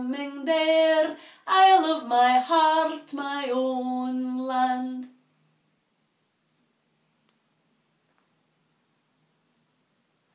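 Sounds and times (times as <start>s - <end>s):
heavenly voice singing: 0.0s - 5.2s.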